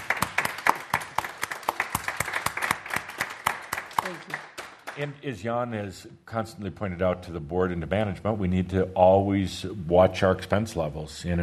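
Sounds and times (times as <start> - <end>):
meeting audience applause: 0.0 - 5.1
speech: 5.0 - 11.4.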